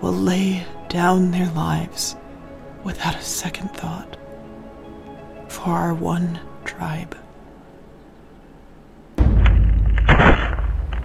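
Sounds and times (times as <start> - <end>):
speech: 0.1 - 2.2, 2.8 - 4.2, 5.5 - 7.2
sudden loud crunch: 9.2 - 11.0
timbers shaking, rumbling and creaking: 9.2 - 11.0.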